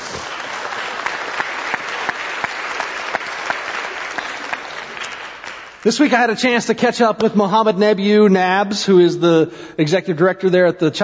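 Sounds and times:
audience clapping: 0:00.0 - 0:06.3
speech: 0:05.8 - 0:11.0.

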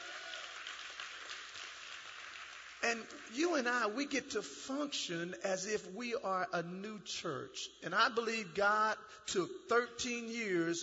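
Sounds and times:
audience clapping hands: 0:00.0 - 0:03.5
speech: 0:02.9 - 0:10.8.

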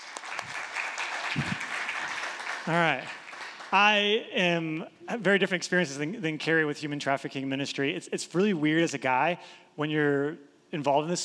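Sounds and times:
audience clapping: 0:00.0 - 0:04.0
speech: 0:02.7 - 0:11.2.

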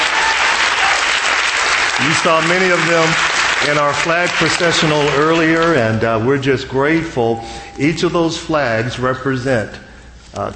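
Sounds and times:
audience applause: 0:00.0 - 0:05.8
speech: 0:02.0 - 0:10.5.

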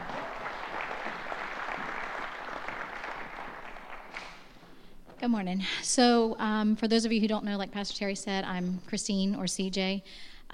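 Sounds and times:
congregation applause welcoming a speaker: 0:00.0 - 0:04.5
speech: 0:05.2 - 0:10.5.

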